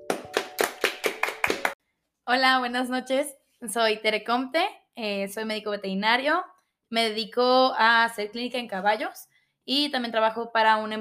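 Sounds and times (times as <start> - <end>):
applause: 0.0 - 1.8
speech: 2.3 - 10.9.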